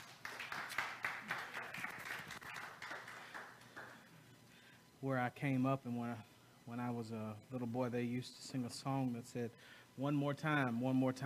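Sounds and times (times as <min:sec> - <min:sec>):
audience clapping hands: 0:00.0 - 0:04.0
speech: 0:05.0 - 0:11.2.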